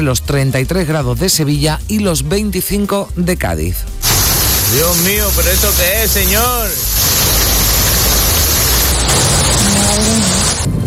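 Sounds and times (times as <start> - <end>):
speech: 0.0 - 7.3
torrential rain: 4.0 - 10.8.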